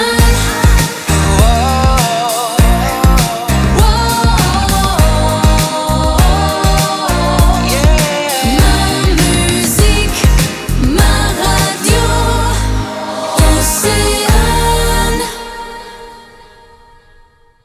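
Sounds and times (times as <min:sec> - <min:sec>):
jingle: 0:00.2 - 0:16.4.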